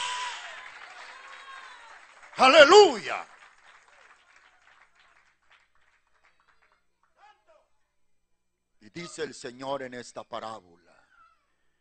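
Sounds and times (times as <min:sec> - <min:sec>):
audience applause: 0:00.0 - 0:06.8
speech: 0:02.4 - 0:03.3, 0:08.9 - 0:11.0.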